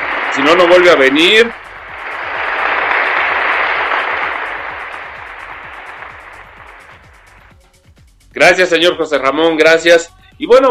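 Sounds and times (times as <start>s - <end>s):
group clapping: 0.0s - 7.6s
speech: 0.4s - 1.6s, 8.4s - 10.6s.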